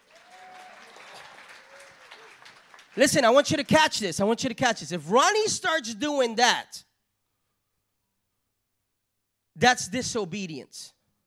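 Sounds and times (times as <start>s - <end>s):
audience clapping: 0.0s - 4.1s
speech: 3.0s - 6.9s, 9.6s - 11.0s.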